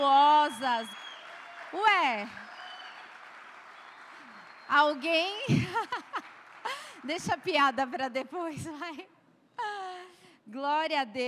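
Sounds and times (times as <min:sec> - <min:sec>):
audience applause: 0:00.0 - 0:07.7
speech: 0:01.7 - 0:02.4, 0:04.7 - 0:06.3, 0:07.0 - 0:11.2
laughter: 0:05.4 - 0:07.0.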